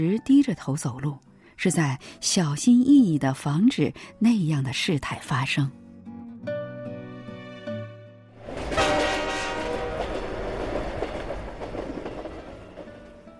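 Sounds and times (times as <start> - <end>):
speech: 0.0 - 5.8
train horn blasts: 8.4 - 10.5
train rumbling and clattering as it pulls into the station: 8.4 - 13.3.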